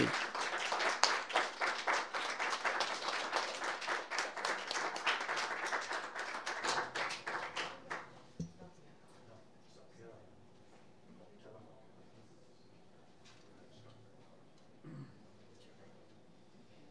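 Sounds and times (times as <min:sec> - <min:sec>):
audience applauding to welcome two performers: 0:00.0 - 0:08.0.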